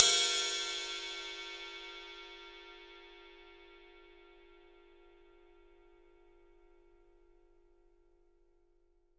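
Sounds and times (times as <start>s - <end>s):
ride cymbal: 0.0s - 2.8s.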